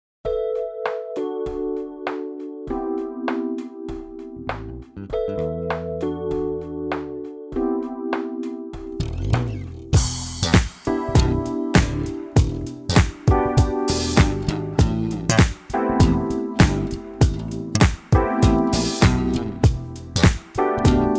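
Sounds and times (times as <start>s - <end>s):
music in F and E minor without saxophones: 0.3s - 21.1s.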